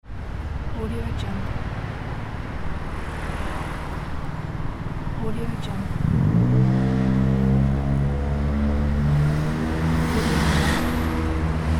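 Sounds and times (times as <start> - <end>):
city ambience: 0.0 - 11.7.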